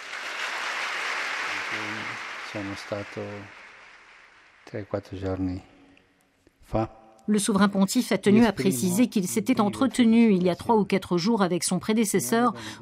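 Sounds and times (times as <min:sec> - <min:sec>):
thunderous applause from a large crowd: 0:00.0 - 0:05.1
speech: 0:01.7 - 0:03.6, 0:04.7 - 0:05.7, 0:06.7 - 0:12.8.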